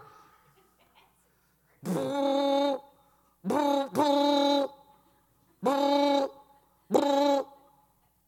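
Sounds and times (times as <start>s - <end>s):
man's voice imitating booming car stereo bass: 1.8s - 4.8s, 5.6s - 7.6s.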